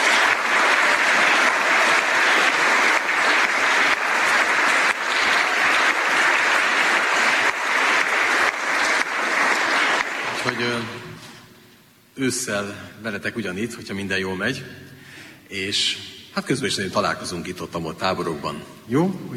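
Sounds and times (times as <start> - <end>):
audience applause: 0.0 - 11.0
speech: 12.2 - 14.9, 15.5 - 19.3.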